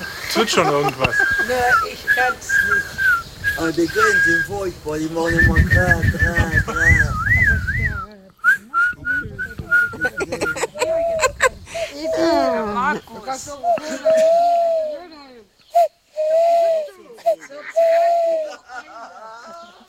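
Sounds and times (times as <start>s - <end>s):
laughter: 0.0s - 4.4s, 6.1s - 7.3s, 9.4s - 12.8s, 13.6s - 15.0s, 16.6s - 19.8s
speech: 0.4s - 3.0s, 3.6s - 6.8s, 12.9s - 14.6s
person whistling an owl-like bird call: 1.0s - 4.6s, 5.3s - 10.6s, 13.6s - 18.6s.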